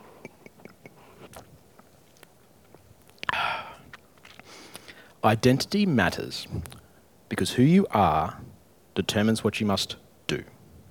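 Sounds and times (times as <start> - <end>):
person sipping water: 0.0 - 5.2
speech: 5.2 - 6.7, 7.3 - 10.5.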